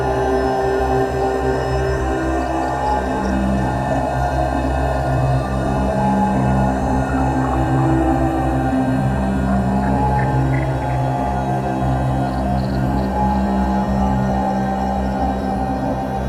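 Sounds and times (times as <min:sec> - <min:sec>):
complex drone: 0:00.0 - 0:16.2.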